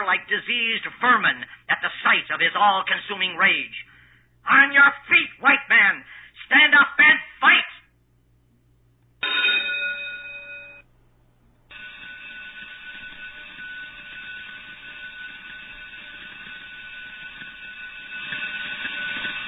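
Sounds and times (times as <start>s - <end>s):
speech: 0.1s - 7.7s
electric bell ringing: 9.2s - 10.9s, 11.7s - 19.4s.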